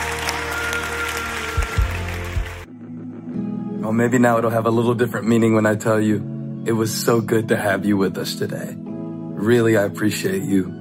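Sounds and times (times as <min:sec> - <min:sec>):
audience clapping: 0:00.0 - 0:02.7
speech: 0:03.9 - 0:10.7.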